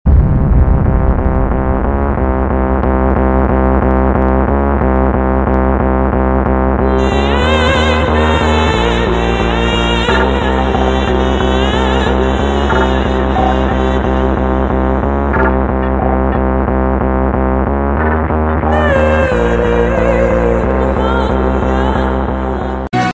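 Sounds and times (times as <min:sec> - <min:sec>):
angry background music: 0:00.2 - 0:22.8.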